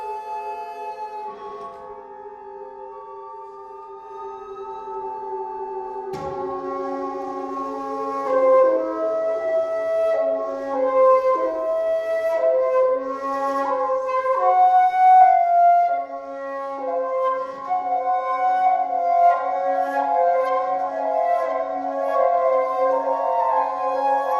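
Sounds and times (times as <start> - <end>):
noise flute: 0.0 - 24.3.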